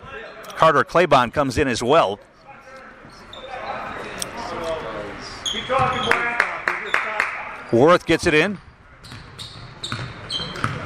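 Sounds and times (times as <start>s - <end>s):
low hum of crowd and arena noise: 0.0s - 10.8s
speech: 0.6s - 2.3s, 5.5s - 6.1s, 7.7s - 9.2s
basketball dribbled on court during a game: 9.1s - 10.8s.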